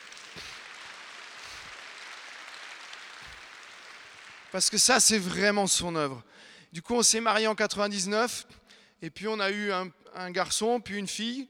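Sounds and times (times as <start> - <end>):
audience applause: 0.0 - 5.4
speech: 4.5 - 11.4.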